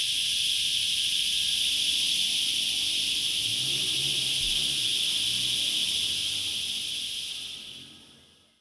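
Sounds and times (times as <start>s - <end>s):
cicadas in a church courtyard in an afternoon city: 0.0s - 8.4s.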